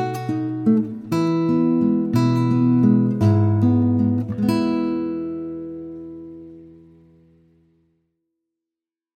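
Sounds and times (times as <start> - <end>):
traditional Spanish romanza: 0.0 - 6.8.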